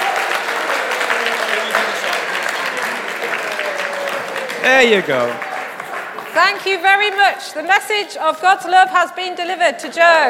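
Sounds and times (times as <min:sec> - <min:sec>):
audience cheering: 0:00.0 - 0:07.3
applause: 0:00.0 - 0:08.2
speech: 0:04.6 - 0:05.5, 0:06.4 - 0:10.2.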